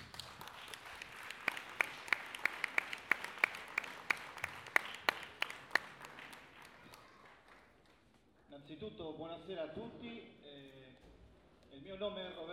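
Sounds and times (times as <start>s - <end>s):
audience applause: 0.0s - 8.0s
speech: 8.9s - 10.4s, 11.8s - 12.5s.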